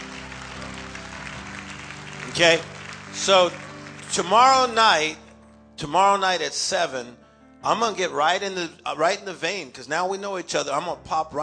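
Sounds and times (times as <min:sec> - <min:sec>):
crowd applauding: 0:00.0 - 0:05.3
speech: 0:02.4 - 0:05.2, 0:05.8 - 0:11.4.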